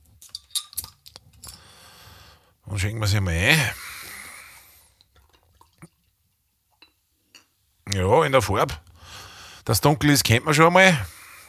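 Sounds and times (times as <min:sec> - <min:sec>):
metallic clinks and taps on a beer bottle: 0:00.2 - 0:01.7, 0:06.8 - 0:07.6
speech: 0:02.7 - 0:03.8, 0:08.0 - 0:08.9, 0:09.6 - 0:11.2.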